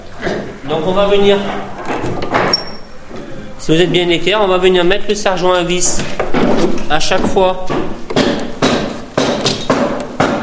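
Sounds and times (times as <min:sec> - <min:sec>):
speech: 0:00.7 - 0:02.4, 0:03.7 - 0:08.0
hammer driving nails into wooden laths: 0:06.2 - 0:10.4.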